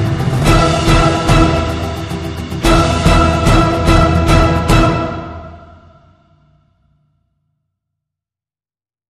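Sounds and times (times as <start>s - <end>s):
adventure music: 0.0s - 6.3s.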